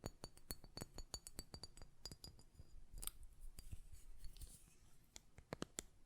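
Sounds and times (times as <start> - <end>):
glass perfume bottles tapped and handled: 0.0 - 4.4.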